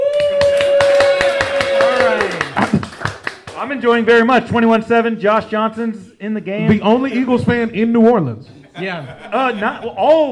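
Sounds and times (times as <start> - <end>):
person whooping: 0.0 - 2.7
audience clapping: 0.0 - 3.8
speech: 3.7 - 10.3
laughter: 8.5 - 10.3.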